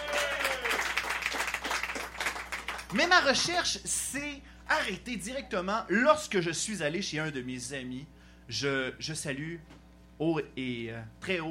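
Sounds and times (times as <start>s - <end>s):
audience applause at a comedy show: 0.0s - 3.2s
speech: 2.9s - 11.4s.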